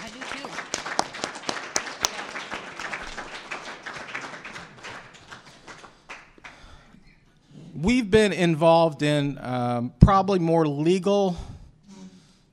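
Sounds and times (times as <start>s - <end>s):
audience clapping: 0.0s - 6.9s
speech: 7.8s - 11.5s.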